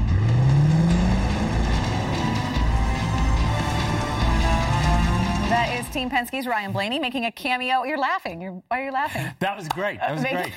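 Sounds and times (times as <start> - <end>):
car engine revving in a driving scene in the series Taken: 0.0 - 6.1
speech: 6.0 - 10.5.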